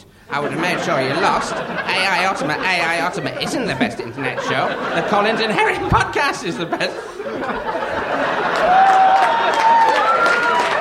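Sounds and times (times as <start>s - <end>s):
speech: 0.3s - 7.8s
laughter: 0.3s - 10.7s
audience clapping: 8.1s - 10.7s.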